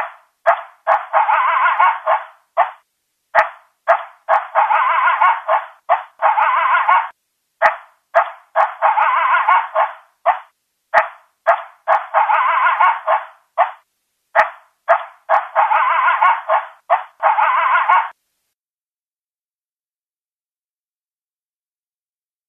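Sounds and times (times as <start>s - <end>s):
coyote barking and yelping: 0.0s - 18.2s.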